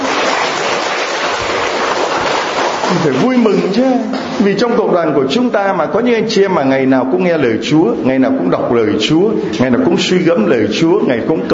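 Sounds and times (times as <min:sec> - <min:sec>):
audience applauding loudly: 0:00.0 - 0:03.9
speech: 0:02.9 - 0:11.5.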